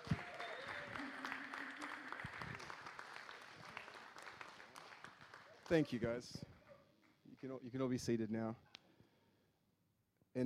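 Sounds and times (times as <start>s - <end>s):
audience applause: 0.0s - 6.4s
speech: 5.7s - 6.5s, 7.4s - 8.7s.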